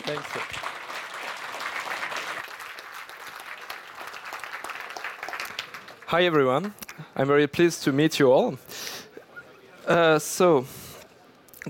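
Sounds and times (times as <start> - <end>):
audience applause: 0.0 - 6.1
speech: 0.1 - 0.6, 6.1 - 8.7, 9.9 - 10.8.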